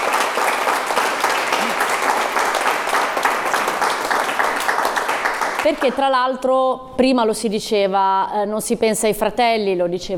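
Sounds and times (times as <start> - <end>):
audience applause: 0.0 - 6.0
speech: 5.6 - 10.1.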